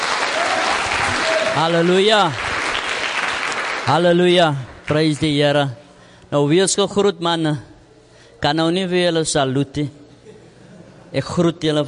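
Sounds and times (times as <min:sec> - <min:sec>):
audience applause: 0:00.0 - 0:04.0
speech: 0:01.6 - 0:02.4, 0:03.9 - 0:07.7, 0:08.4 - 0:10.0, 0:11.1 - 0:11.8.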